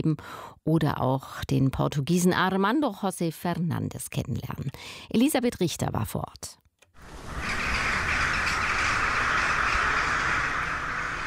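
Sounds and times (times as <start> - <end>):
speech: 0.0 - 7.6
crows cawing outside in a castle garden: 7.1 - 11.2.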